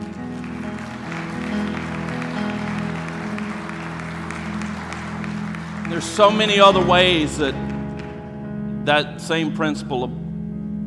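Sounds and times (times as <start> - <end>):
audience applause: 0.0 - 8.2
sustained organ or keyboard chords: 0.0 - 10.8
speech: 5.9 - 7.7, 8.8 - 10.2.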